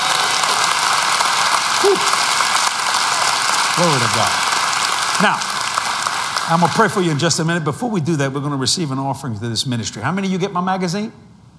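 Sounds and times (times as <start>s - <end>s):
crowd applauding: 0.0s - 8.0s
speech: 1.8s - 2.2s, 3.8s - 4.5s, 5.2s - 5.5s, 6.5s - 11.3s.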